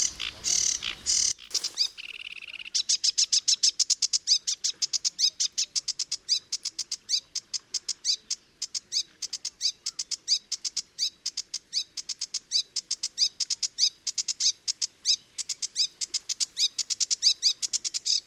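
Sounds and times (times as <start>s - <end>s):
sedge warbler: 0.0s - 18.2s.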